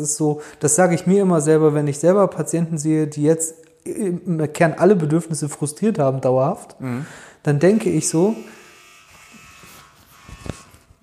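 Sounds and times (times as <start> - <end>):
speech: 0.0 - 8.6
doorbell buzzing: 7.8 - 11.0.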